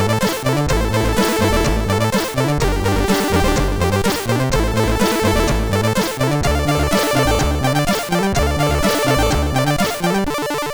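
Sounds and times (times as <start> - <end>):
chiptune jam on a MOS 6581R2 sound chip: 0.0 - 10.7.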